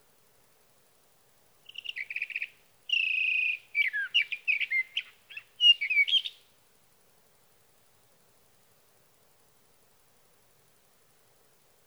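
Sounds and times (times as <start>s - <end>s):
sage thrasher singing: 1.7s - 6.4s.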